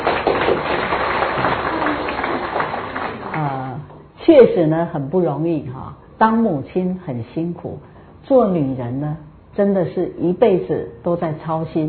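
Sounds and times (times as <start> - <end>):
audience applause: 0.0 - 3.4
speech: 4.3 - 11.8.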